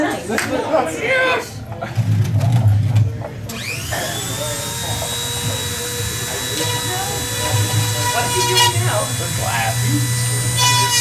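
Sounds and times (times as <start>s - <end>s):
speech: 0.3s - 2.2s
Dremel rotary tool cutting into a Game Boy: 3.4s - 10.9s.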